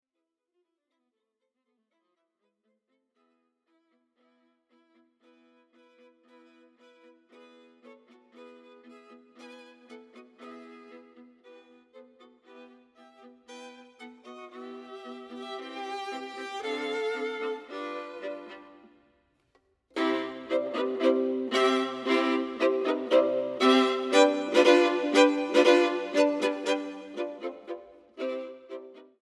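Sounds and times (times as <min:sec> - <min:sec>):
lively allegro music: 0:14.3 - 0:19.0, 0:20.0 - 0:29.0.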